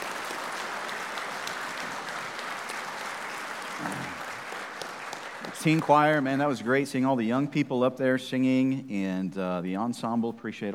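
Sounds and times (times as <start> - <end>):
audience applause: 0.0 - 6.6
speech: 5.6 - 10.7.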